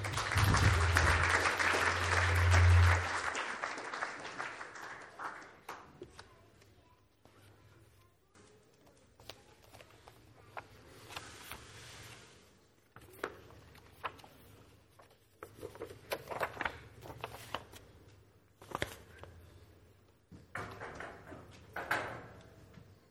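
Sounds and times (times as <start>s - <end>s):
church audience applause welcoming a speaker to the podium: 0.0s - 5.9s.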